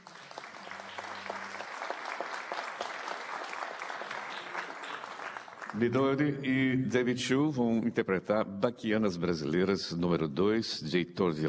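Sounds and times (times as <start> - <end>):
audience applause: 0.0 - 6.2
speech: 5.7 - 11.4.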